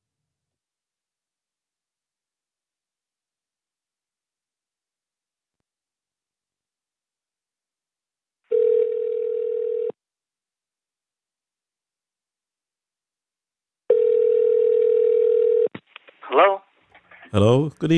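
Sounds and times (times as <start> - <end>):
outgoing phone call ringing tones: 8.5 - 10.0, 13.9 - 15.7
speech: 16.4 - 16.6, 17.3 - 17.9.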